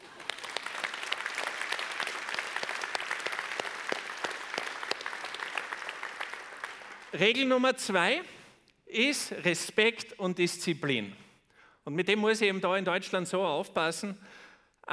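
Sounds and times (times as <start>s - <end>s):
audience applause: 0.0s - 7.2s
speech: 7.1s - 11.2s, 11.9s - 14.9s.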